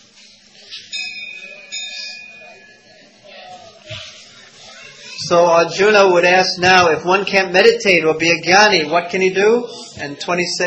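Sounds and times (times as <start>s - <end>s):
murmur of voices: 0.0s - 10.6s
bell ringing: 0.7s - 3.2s
speech: 5.3s - 10.6s.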